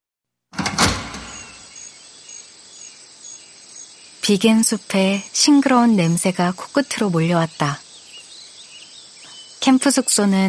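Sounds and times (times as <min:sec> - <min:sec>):
front entrance sliding door opening with rolling rumble: 0:00.6 - 0:01.8
steady outdoor hiss: 0:00.8 - 0:10.4
high insect-like chirps: 0:01.2 - 0:10.4
speech: 0:04.3 - 0:07.8, 0:09.6 - 0:10.4.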